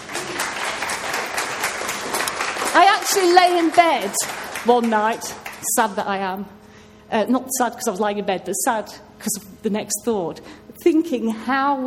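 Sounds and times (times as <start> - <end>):
round of applause: 0.0 - 5.6
speech: 2.8 - 11.8.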